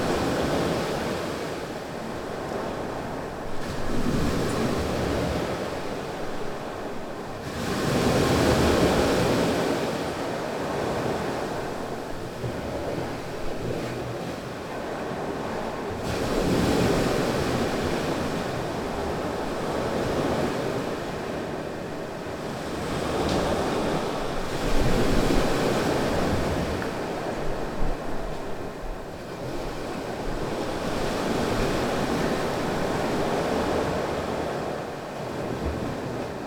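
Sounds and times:
waves recorded from a balcony in Curaçao with a Rode NT4: 0:00.0 - 0:36.4.

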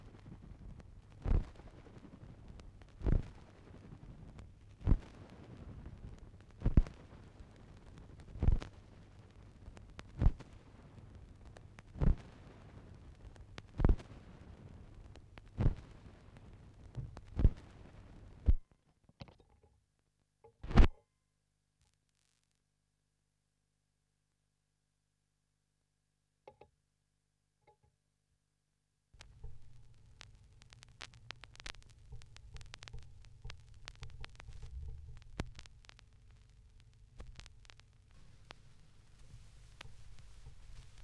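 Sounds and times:
vinyl record crackle mix: 0:00.0 - 0:18.6, 0:20.6 - 0:20.9, 0:29.2 - 0:41.0.

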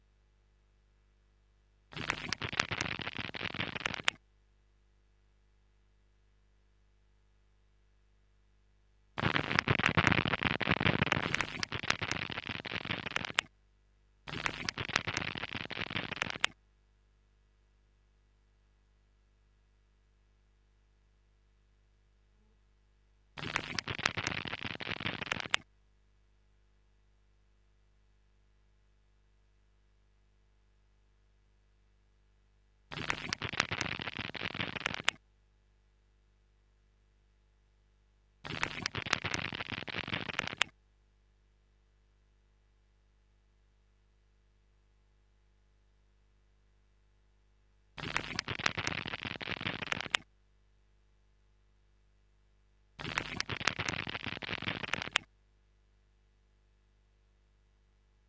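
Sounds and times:
stereo instrument crackling loop: 0:01.9 - 0:04.2, 0:09.2 - 0:13.5, 0:14.3 - 0:16.6, 0:23.4 - 0:25.6, 0:32.9 - 0:35.2, 0:38.4 - 0:40.7, 0:48.0 - 0:50.2, 0:53.0 - 0:55.3.

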